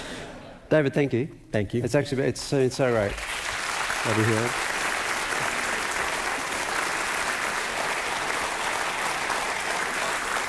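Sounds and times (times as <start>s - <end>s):
speech: 0.7s - 3.3s, 4.0s - 4.7s
audience clapping: 2.9s - 10.4s.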